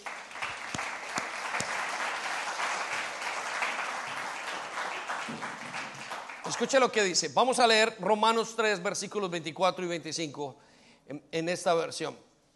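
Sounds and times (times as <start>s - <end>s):
audience applause: 0.0s - 7.0s
speech: 6.6s - 12.3s.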